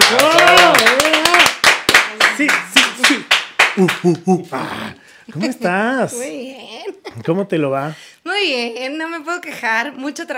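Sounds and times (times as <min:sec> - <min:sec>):
audience applause: 0:00.0 - 0:04.1
speech: 0:00.1 - 0:00.5, 0:03.8 - 0:10.3
laughter: 0:03.8 - 0:04.6.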